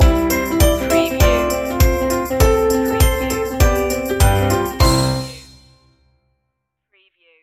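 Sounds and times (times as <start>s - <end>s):
musical stinger: 0.0s - 5.8s.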